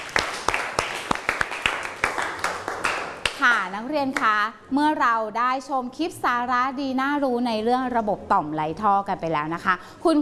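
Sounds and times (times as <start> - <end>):
classroom applause: 0.0 - 3.5
speech: 3.4 - 10.2.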